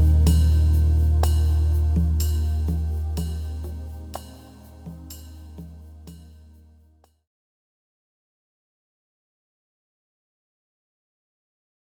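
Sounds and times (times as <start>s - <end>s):
rhythm: 0.0s - 6.5s.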